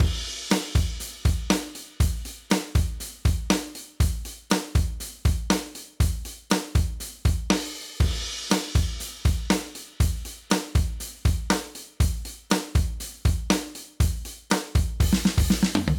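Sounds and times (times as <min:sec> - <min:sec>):
drums: 0:00.0 - 0:15.9.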